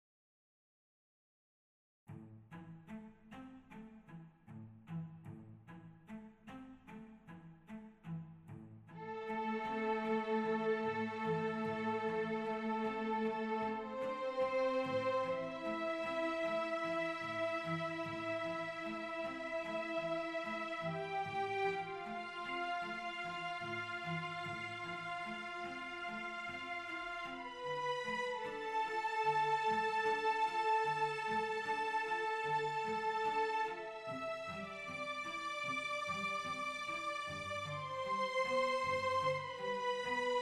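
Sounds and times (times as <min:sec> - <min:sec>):
background office music: 0:09.0 - 0:40.3.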